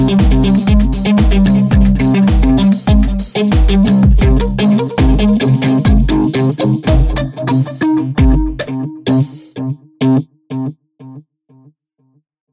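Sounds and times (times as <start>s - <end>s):
tempo sweeps: 0.0s - 9.5s.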